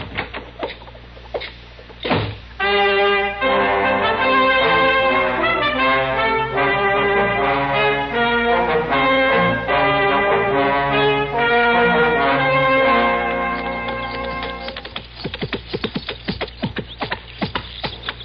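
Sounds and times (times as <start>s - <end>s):
sustained harmonic tones: 2.9s - 15.0s
hoofbeats of a hard-ridden horse arriving: 12.6s - 18.2s.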